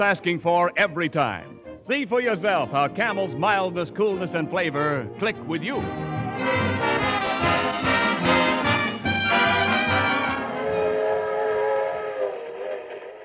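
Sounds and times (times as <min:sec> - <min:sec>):
speech: 0:00.0 - 0:06.7
train whistle chord at a suburban railroad station: 0:06.4 - 0:13.2
train rumbling and chugging at a suburban railroad station: 0:10.4 - 0:13.2.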